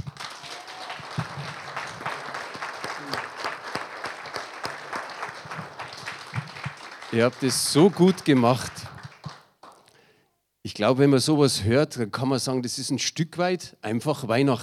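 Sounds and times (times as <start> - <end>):
audience applause: 0.0 - 9.9
speech: 7.1 - 8.9, 10.8 - 14.6.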